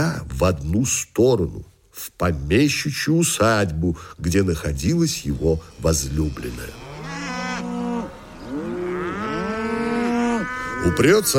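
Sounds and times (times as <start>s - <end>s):
speech: 0.0s - 6.8s, 10.8s - 11.3s
bull bellowing: 5.3s - 11.3s.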